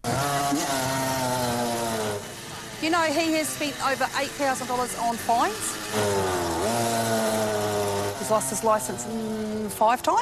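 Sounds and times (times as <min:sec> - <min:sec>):
motorbike engine revving on street: 0:00.0 - 0:10.1
speech: 0:02.9 - 0:06.3, 0:08.3 - 0:10.1.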